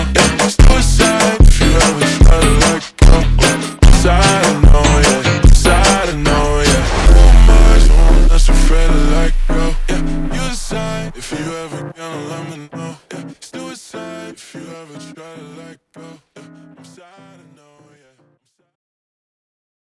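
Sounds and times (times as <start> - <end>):
ultra slowed phonk music: 0.0 - 12.4.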